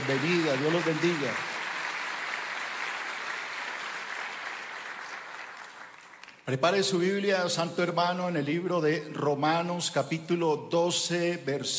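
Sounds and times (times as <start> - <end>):
applause: 0.0 - 6.8
speech: 0.1 - 1.5, 6.4 - 11.7.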